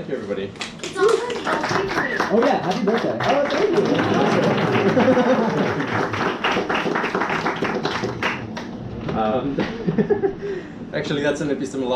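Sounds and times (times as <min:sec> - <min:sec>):
speech: 0:00.0 - 0:06.3, 0:09.2 - 0:11.9
audience applause: 0:00.9 - 0:08.8
laughter: 0:03.2 - 0:06.2, 0:09.5 - 0:10.5.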